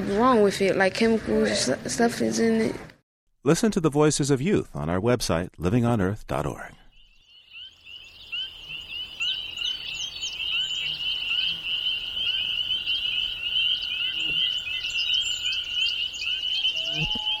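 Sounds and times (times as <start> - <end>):
speech: 0.1 - 6.8
pond wildlife on Echo Pond in the Adirondack Mountains: 6.9 - 17.3
loon calling on Echo Pond in the Adirondack Mountains: 7.5 - 17.3.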